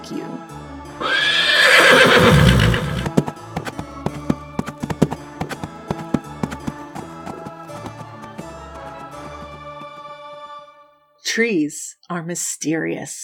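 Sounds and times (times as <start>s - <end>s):
speech: 0.1s - 1.2s, 11.4s - 13.2s
horse whinnying: 1.0s - 3.1s
hoofbeats clattering: 1.8s - 8.4s.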